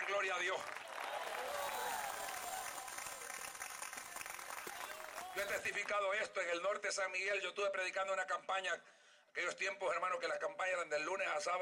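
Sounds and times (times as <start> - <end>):
audience applause: 0.0 - 5.9
speech: 0.1 - 1.6, 5.4 - 11.6.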